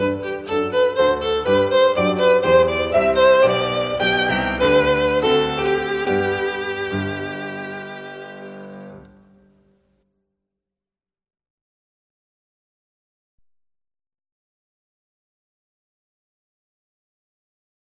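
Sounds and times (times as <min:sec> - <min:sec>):
violin bourrée: 0:00.0 - 0:09.2.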